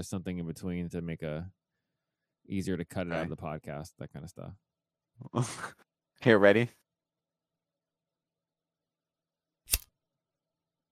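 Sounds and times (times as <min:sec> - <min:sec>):
speech: 0:00.0 - 0:01.6, 0:02.5 - 0:06.8
lighter flick: 0:09.7 - 0:09.9.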